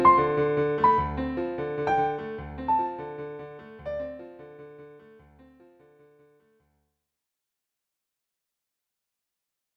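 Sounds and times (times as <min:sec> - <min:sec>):
piano: 0:00.0 - 0:06.8.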